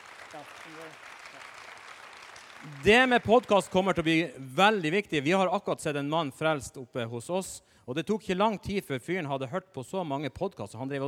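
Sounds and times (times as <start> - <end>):
audience applause: 0.0 - 4.2
speech: 0.4 - 1.8, 2.6 - 11.0.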